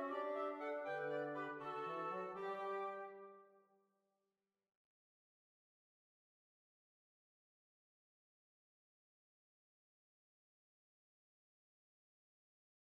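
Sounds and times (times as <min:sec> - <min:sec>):
march music: 0:00.0 - 0:03.3.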